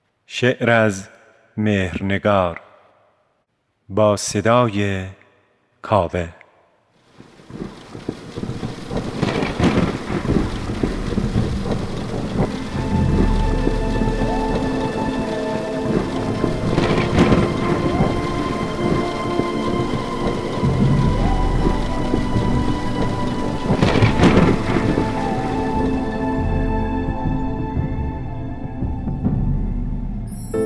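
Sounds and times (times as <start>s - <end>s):
speech: 0.3s - 2.7s, 3.9s - 5.2s, 5.8s - 6.4s
loud thunder rumbles in a thunderstorm: 7.0s - 30.5s
steady dense rain pouring in a thunderstorm: 7.0s - 30.6s.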